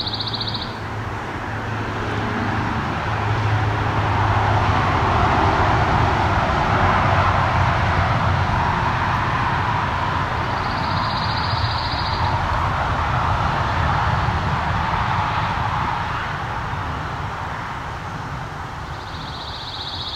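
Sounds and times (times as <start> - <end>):
high-pitched trills from a pine warbler: 0.0 - 0.8, 10.5 - 12.3, 18.9 - 20.1
loud steady roar of highway traffic: 0.0 - 20.1.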